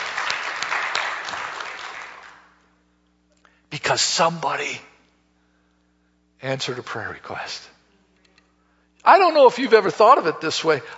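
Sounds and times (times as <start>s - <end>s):
audience applause: 0.0s - 2.6s
speech: 3.9s - 4.9s, 6.4s - 7.7s, 9.0s - 10.9s.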